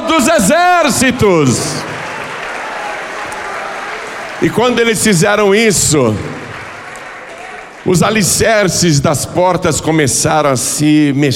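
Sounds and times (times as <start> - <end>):
speech: 0.4 - 2.0, 4.4 - 6.5, 7.9 - 11.3
audience applause: 1.3 - 8.4.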